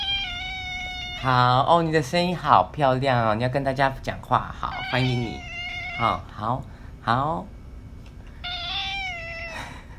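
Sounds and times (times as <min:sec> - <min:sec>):
cat meowing: 0:00.0 - 0:01.7, 0:04.6 - 0:06.3, 0:08.4 - 0:09.7
speech: 0:01.2 - 0:07.6.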